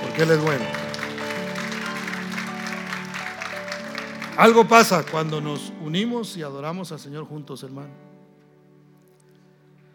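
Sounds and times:
loud applause from audience: 0:00.0 - 0:05.6
speech: 0:00.2 - 0:00.8, 0:04.4 - 0:08.1.

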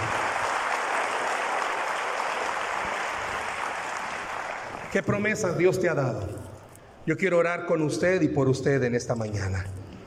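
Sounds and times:
audience applauding: 0:00.0 - 0:05.0
speech: 0:04.9 - 0:06.5, 0:07.1 - 0:09.8.

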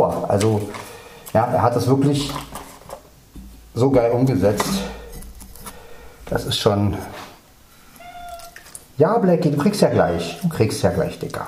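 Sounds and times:
hiss: 0:00.0 - 0:11.4
speech: 0:00.1 - 0:02.6, 0:03.8 - 0:04.9, 0:06.3 - 0:07.2, 0:09.0 - 0:11.4
cat meowing: 0:07.9 - 0:08.8, 0:09.9 - 0:10.6.

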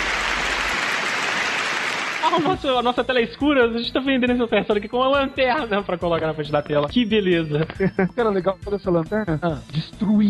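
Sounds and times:
applause: 0:00.0 - 0:02.7
speech: 0:02.3 - 0:10.2
laughter: 0:07.6 - 0:08.4.

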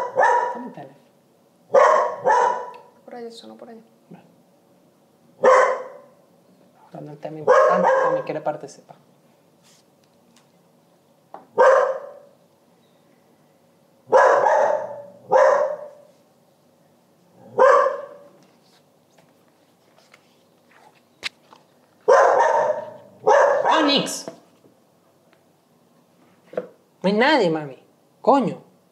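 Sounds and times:
dog barking: 0:00.0 - 0:00.8, 0:01.7 - 0:03.0, 0:05.4 - 0:06.2, 0:07.4 - 0:08.3, 0:11.5 - 0:12.3, 0:14.1 - 0:16.1, 0:17.4 - 0:18.4, 0:22.0 - 0:24.2
low steady hum: 0:00.0 - 0:28.9
speech: 0:03.2 - 0:04.3, 0:06.9 - 0:09.1, 0:24.0 - 0:24.3, 0:27.0 - 0:28.6.

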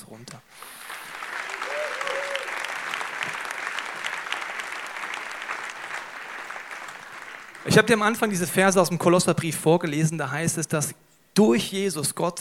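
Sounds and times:
speech: 0:00.1 - 0:00.8, 0:07.6 - 0:12.4
audience applause: 0:00.6 - 0:08.4.

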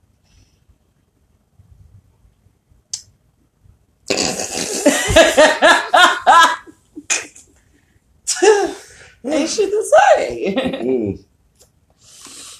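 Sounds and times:
burp into the microphone: 0:04.1 - 0:04.9
laughter: 0:04.6 - 0:06.7
speech: 0:10.2 - 0:11.3.

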